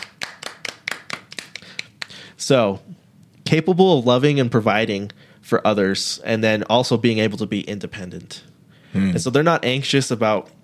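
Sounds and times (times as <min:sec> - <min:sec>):
hand clapping: 0:00.0 - 0:02.2
speech: 0:02.4 - 0:10.6.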